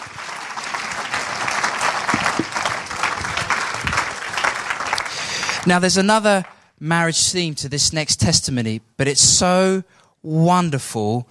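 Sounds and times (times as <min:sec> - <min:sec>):
audience applause: 0:00.0 - 0:06.6
speech: 0:05.6 - 0:11.2.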